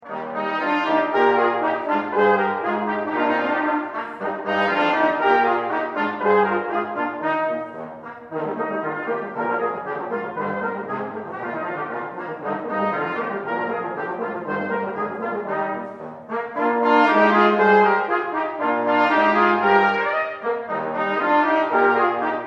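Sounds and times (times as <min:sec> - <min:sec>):
brass trio playing: 0:00.0 - 0:22.4.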